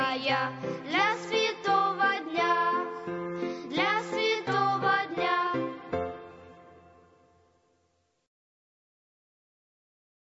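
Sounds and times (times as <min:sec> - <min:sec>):
children's choir singing: 0:00.0 - 0:06.3.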